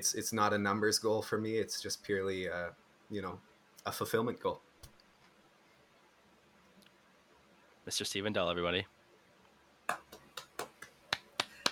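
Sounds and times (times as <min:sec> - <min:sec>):
speech: 0:00.0 - 0:04.7, 0:07.9 - 0:09.0
sharp hand claps sound effect: 0:09.9 - 0:11.6.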